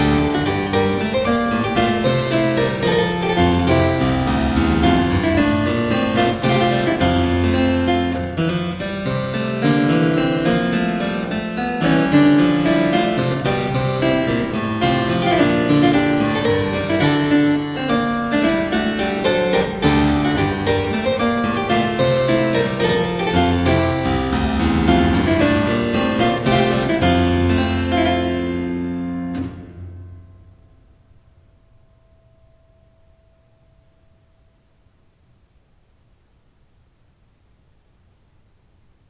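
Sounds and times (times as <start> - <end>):
harpsichord baroque gigue in G major: 0.0 - 30.9.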